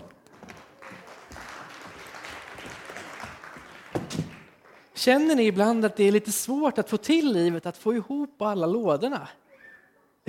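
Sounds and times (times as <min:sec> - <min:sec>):
audience applause: 0:00.0 - 0:05.0
speech: 0:05.0 - 0:09.4.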